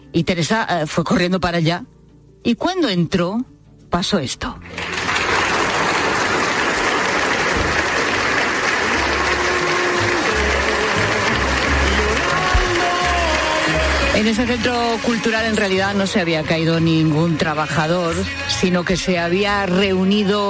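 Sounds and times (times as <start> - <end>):
speech: 0.1 - 4.9, 14.2 - 20.4
large crowd giving enormous applause: 4.6 - 18.5.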